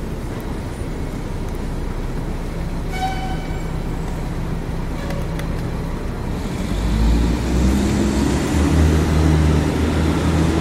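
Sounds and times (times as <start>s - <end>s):
New York City traffic rumble: 0.0s - 10.6s
deep engine drone: 0.0s - 10.6s
rain in New York City heard through an open window: 0.0s - 10.6s
horn toot: 2.9s - 3.7s.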